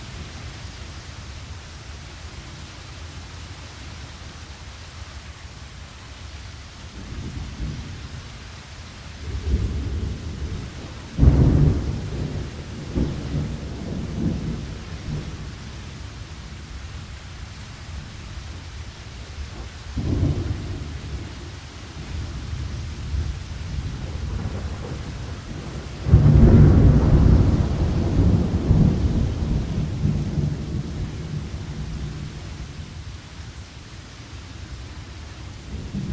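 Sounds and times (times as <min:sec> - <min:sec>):
thunderstorm: 0:06.9 - 0:08.3, 0:09.2 - 0:16.6, 0:19.5 - 0:33.0, 0:35.6 - 0:36.1.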